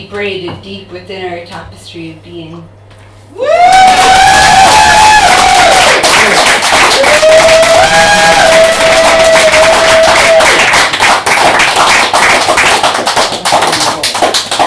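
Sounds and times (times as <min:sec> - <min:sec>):
speech: 0:00.0 - 0:03.8
audience cheering: 0:03.4 - 0:11.3
audience applause: 0:03.6 - 0:14.6.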